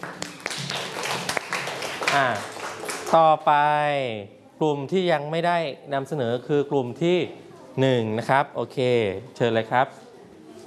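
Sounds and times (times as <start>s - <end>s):
class clapping hands: 0.0s - 3.3s
speech: 2.1s - 2.5s, 3.1s - 10.0s.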